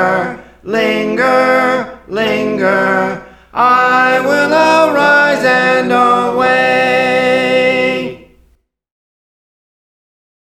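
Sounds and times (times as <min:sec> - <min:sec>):
soprano singing: 0:00.0 - 0:08.3.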